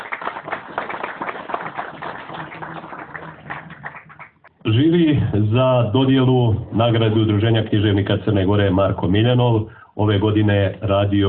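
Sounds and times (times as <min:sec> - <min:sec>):
warm applause for a sponsor at a literary awards event: 0:00.0 - 0:04.6
speech: 0:04.7 - 0:11.2.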